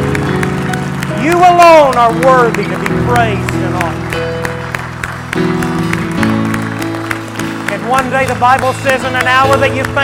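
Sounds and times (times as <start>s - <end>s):
church congregation scattered clapping: 0.0s - 10.0s
speech: 1.2s - 4.4s, 7.8s - 10.0s.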